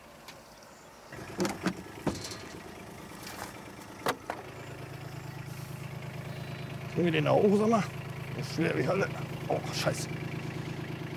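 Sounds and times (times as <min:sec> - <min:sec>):
car engine idling: 0:00.0 - 0:11.1
sharp knocks and clunks: 0:01.2 - 0:04.5
speech: 0:07.0 - 0:10.2.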